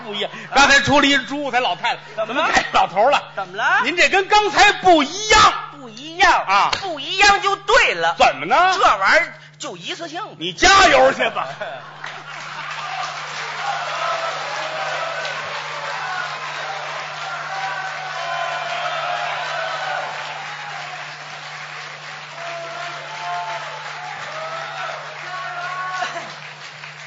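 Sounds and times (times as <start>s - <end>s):
speech: 0.0s - 12.0s
laughter: 1.5s - 3.9s, 11.0s - 17.5s, 25.3s - 26.6s
audience applause: 11.9s - 27.0s.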